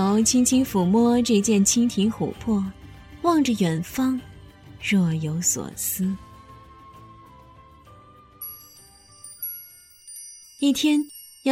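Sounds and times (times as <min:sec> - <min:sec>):
speech: 0:00.0 - 0:06.2, 0:10.6 - 0:11.4
soft music: 0:00.0 - 0:11.4
wind chime tinkling: 0:08.4 - 0:11.4.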